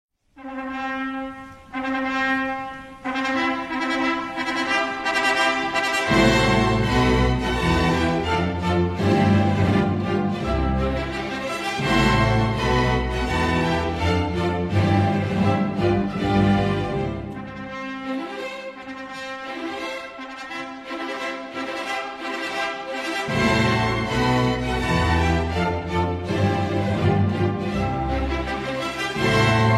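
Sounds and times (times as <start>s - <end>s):
wedding music: 0.4s - 29.7s.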